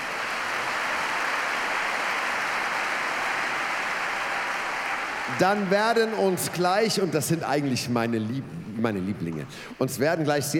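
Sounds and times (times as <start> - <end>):
audience applause: 0.0 - 8.0
speech: 5.3 - 10.5.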